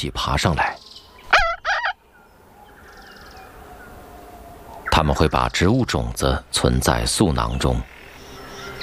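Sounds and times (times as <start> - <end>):
speech: 0.0 - 0.8, 5.0 - 7.9
thick-billed parrot calls: 1.3 - 2.0.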